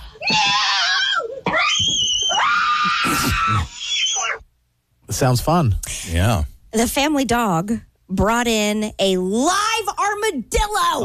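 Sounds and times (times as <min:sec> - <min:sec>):
family screaming in panic: 0:00.2 - 0:04.4
speech: 0:05.2 - 0:09.6, 0:10.3 - 0:11.0.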